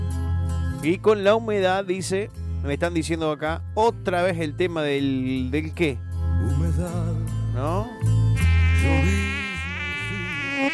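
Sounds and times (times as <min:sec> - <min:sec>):
speech: 0:00.8 - 0:08.0
mosquito buzzing close to the ear: 0:08.4 - 0:10.7.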